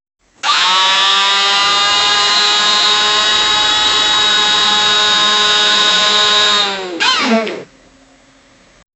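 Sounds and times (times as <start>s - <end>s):
electric scooter: 0.4s - 7.5s.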